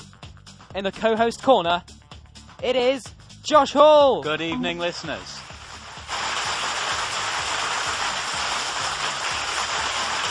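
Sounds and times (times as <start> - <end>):
speech: 0.7 - 1.9, 2.6 - 5.4
round of applause: 6.0 - 10.2.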